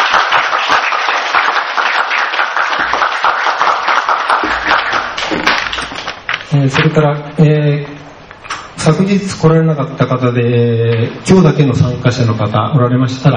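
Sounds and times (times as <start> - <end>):
audience applause of thanks: 0.0 - 6.2
speech: 6.6 - 7.9, 8.8 - 13.3.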